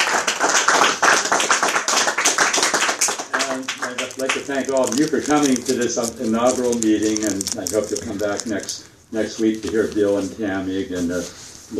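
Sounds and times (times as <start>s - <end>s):
audience applause: 0.0s - 4.5s
speech: 4.2s - 11.7s.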